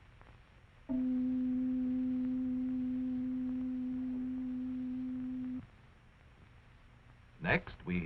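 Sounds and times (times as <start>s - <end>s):
pure tone at middle C: 0.9s - 5.6s.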